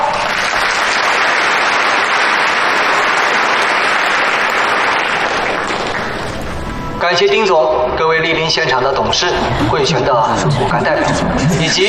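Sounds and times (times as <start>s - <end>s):
warm audience applause: 0.0s - 6.6s
speech: 7.1s - 11.8s
laughter: 9.1s - 11.8s.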